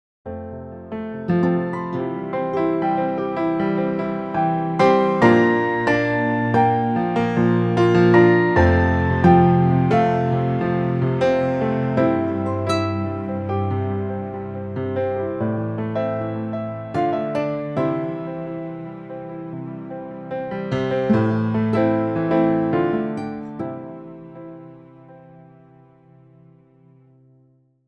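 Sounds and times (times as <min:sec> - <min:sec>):
instrumental music: 0:00.3 - 0:27.4.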